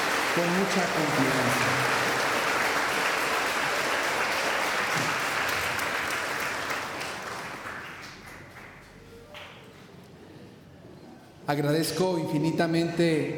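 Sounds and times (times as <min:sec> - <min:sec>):
crowd applauding: 0:00.0 - 0:09.5
speech: 0:00.4 - 0:01.8, 0:11.5 - 0:13.3.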